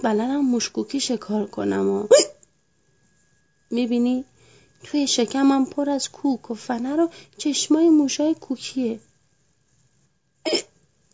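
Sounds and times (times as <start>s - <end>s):
speech: 0.0s - 2.4s, 3.7s - 9.1s, 10.4s - 10.7s
voiced hiccup: 2.1s - 2.4s, 10.4s - 10.8s.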